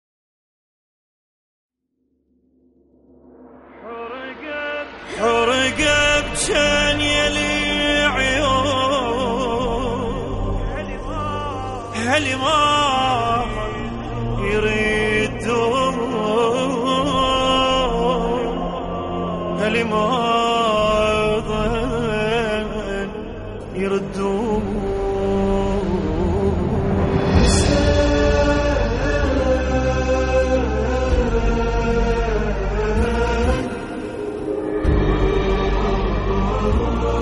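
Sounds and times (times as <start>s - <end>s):
Arabic nawha chant: 3.8s - 37.2s.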